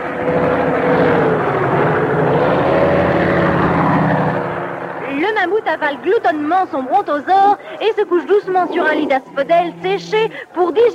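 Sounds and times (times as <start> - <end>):
propeller drone of pterodactyls sounding like airplanes overhead: 0.0 - 10.9
speech: 5.7 - 10.9.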